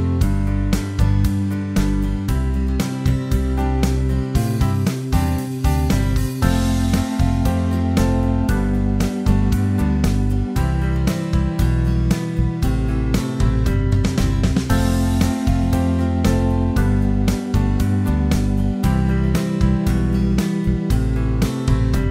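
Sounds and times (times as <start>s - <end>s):
guitar backing track: 0.0s - 22.0s.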